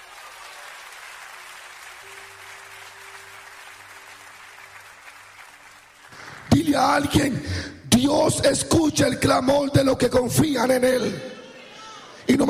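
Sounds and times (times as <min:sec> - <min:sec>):
audience applause: 0:00.0 - 0:07.4
speech: 0:06.5 - 0:11.3.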